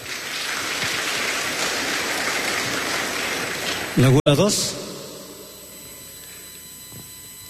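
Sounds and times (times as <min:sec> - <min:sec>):
loud applause: 0:00.0 - 0:04.2
speech: 0:04.0 - 0:04.8.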